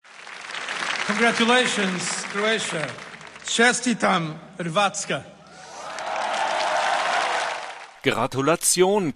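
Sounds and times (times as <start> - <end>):
audience cheering and applauding at a celebration of Croatia's historic night: 0.0 - 4.0, 5.4 - 8.0
speech: 1.1 - 5.4, 8.0 - 9.1.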